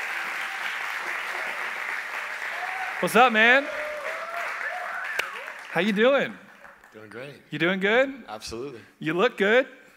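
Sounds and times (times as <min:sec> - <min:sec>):
audience applauding to welcome an interview guest: 0:00.0 - 0:07.2
speech: 0:03.0 - 0:03.8, 0:05.7 - 0:09.8.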